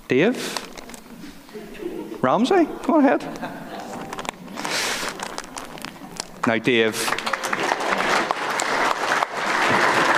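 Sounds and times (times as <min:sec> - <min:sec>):
speech: 0:00.1 - 0:00.7, 0:02.2 - 0:03.6, 0:06.5 - 0:07.2
laughter: 0:01.5 - 0:04.7
audience clapping: 0:05.0 - 0:10.1.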